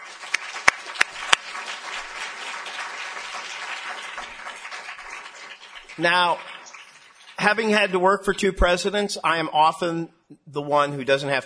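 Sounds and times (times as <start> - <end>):
audience applause: 0.0 - 7.8
speech: 6.0 - 6.5, 7.4 - 11.4.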